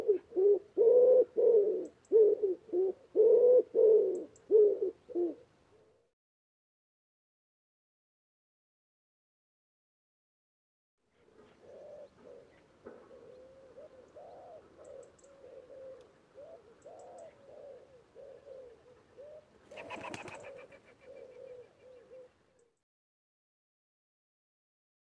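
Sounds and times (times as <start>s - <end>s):
bird giving low soft cooing notes: 0.0s - 6.1s, 11.2s - 22.7s.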